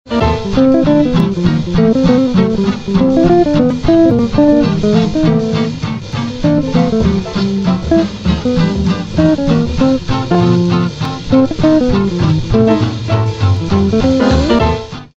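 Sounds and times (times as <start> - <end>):
blues music: 0.1 - 15.1.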